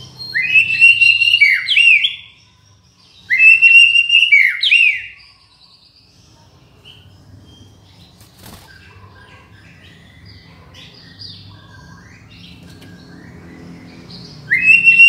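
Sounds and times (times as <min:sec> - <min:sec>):
shama from Borneo singing whistled phrases: 0:00.2 - 0:02.3, 0:03.2 - 0:05.3, 0:14.5 - 0:15.0.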